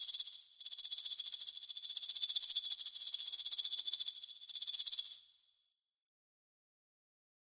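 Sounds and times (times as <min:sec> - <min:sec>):
snake hissing: 0:00.0 - 0:05.4.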